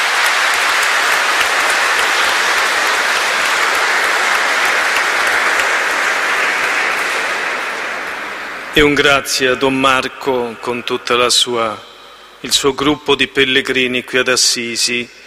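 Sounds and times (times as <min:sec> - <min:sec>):
audience applause: 0:00.0 - 0:08.9
speech: 0:08.8 - 0:15.2.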